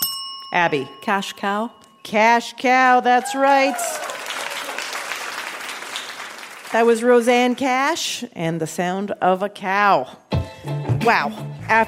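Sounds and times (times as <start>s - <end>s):
speech: 0.5s - 4.2s, 6.7s - 11.8s
audience applause: 3.6s - 6.8s.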